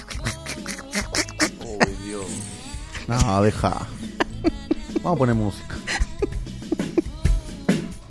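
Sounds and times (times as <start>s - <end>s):
person doing a raspy nasal cartoon-duck voice: 0.0s - 2.4s
laughter: 0.0s - 7.9s
speech: 3.1s - 5.8s.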